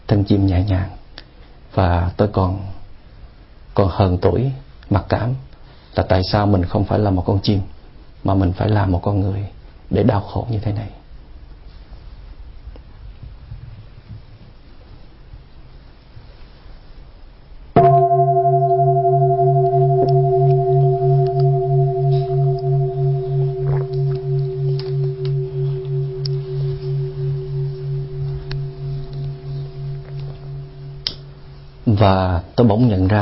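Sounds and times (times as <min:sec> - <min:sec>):
speech: 0:00.1 - 0:01.0, 0:01.8 - 0:02.8, 0:03.8 - 0:11.0
deep bell struck and ringing: 0:17.8 - 0:32.0.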